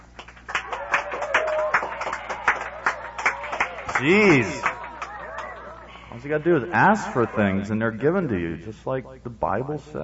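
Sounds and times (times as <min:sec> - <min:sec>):
small group clapping: 0:00.0 - 0:06.0
vocal whoop: 0:00.7 - 0:05.4
speech: 0:04.0 - 0:04.7, 0:06.2 - 0:10.0.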